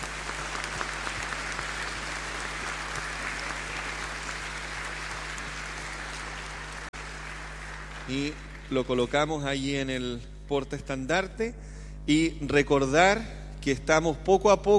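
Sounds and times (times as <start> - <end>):
audience applause: 0.0 - 9.1
speech: 8.1 - 14.7.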